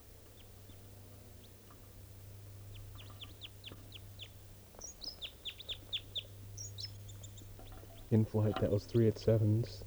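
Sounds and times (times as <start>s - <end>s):
type 2 bird song phrase: 2.6s - 9.8s
speech: 8.1s - 9.8s.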